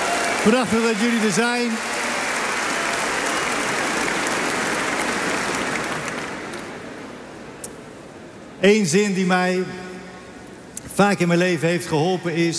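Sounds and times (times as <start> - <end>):
audience applause: 0.0 - 6.9
speech: 0.4 - 2.0, 8.6 - 9.8, 11.0 - 12.5.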